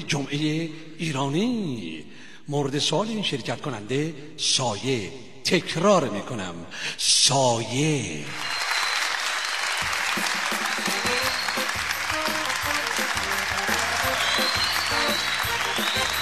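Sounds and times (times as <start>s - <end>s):
speech: 0.1s - 8.6s
audience applause: 8.4s - 16.1s.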